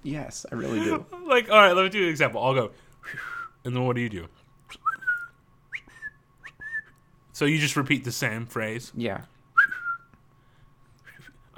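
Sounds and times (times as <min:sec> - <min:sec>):
speech: 0:00.0 - 0:05.0, 0:07.4 - 0:09.3
whistled bird call imitation: 0:04.7 - 0:07.0.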